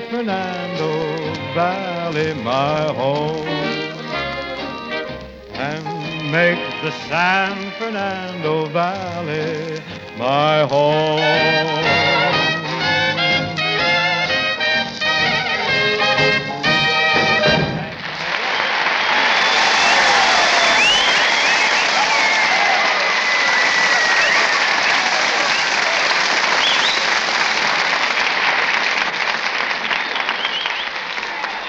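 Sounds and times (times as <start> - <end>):
speech: 0.2 - 3.8, 5.6 - 12.1
audience applause: 11.2 - 31.6
wolf calls and whistles: 18.5 - 22.0, 26.6 - 27.1, 30.1 - 31.0.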